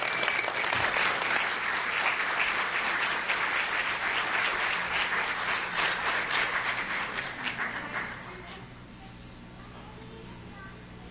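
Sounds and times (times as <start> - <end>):
crowd applauding for children coming in: 0.0 - 8.6.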